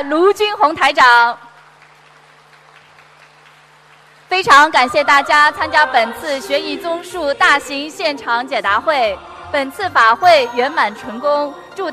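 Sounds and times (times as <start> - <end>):
speech: 0.0 - 1.4, 4.3 - 11.9
audience applause at a Buddhist dharma assembly: 1.5 - 4.4.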